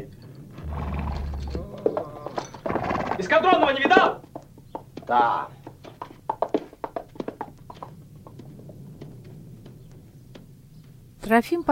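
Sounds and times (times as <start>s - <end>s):
horse hooves clopping on hard street ground: 0.2s - 11.2s
horse being groomed snorting: 0.6s - 3.2s
speech: 3.2s - 4.2s, 5.1s - 5.6s, 11.3s - 11.6s.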